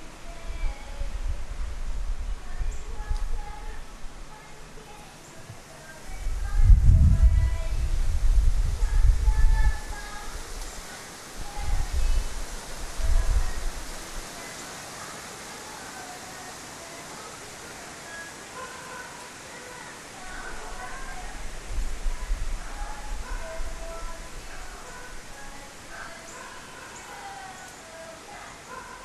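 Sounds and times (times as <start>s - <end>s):
neighbour singing: 0.0s - 1.5s, 2.3s - 29.0s
backyard birds: 2.4s - 6.4s, 9.3s - 21.4s, 22.2s - 29.0s.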